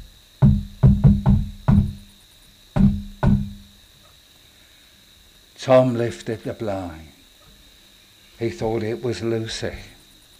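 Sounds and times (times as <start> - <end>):
knocking on a door: 0.4 - 2.1, 2.8 - 3.7
speech: 5.6 - 7.1, 8.4 - 10.0.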